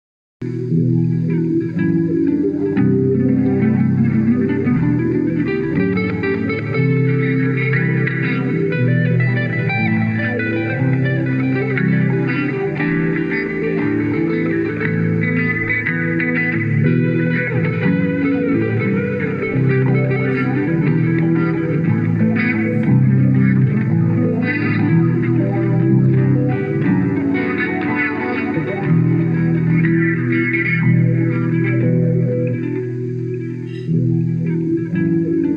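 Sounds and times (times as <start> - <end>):
wah guitar blues: 0.4 - 35.5.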